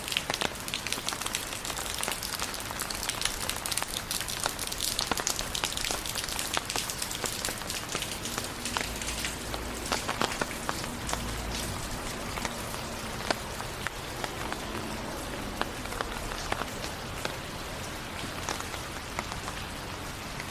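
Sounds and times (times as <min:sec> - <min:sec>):
rain falling: 0:00.0 - 0:20.5.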